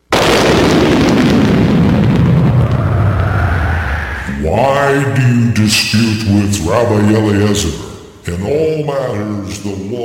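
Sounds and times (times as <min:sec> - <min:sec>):
thunder crack and rumble: 0:00.1 - 0:04.9
speech: 0:04.9 - 0:10.0.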